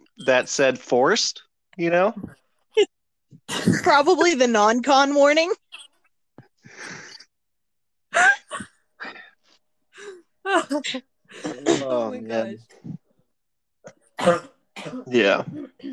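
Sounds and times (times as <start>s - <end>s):
speech: 0.3s - 5.6s, 10.5s - 13.0s, 14.2s - 15.9s
person coughing: 14.2s - 15.9s.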